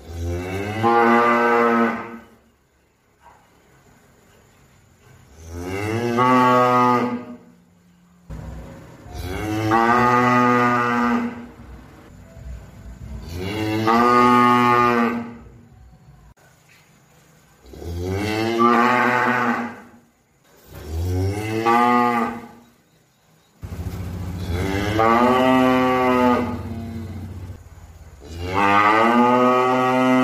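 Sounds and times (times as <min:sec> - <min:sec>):
cow mooing: 0:00.0 - 0:02.4, 0:05.3 - 0:07.4, 0:09.0 - 0:11.8, 0:13.2 - 0:15.5, 0:17.7 - 0:20.0, 0:20.8 - 0:22.6, 0:24.3 - 0:27.6, 0:28.2 - 0:30.2.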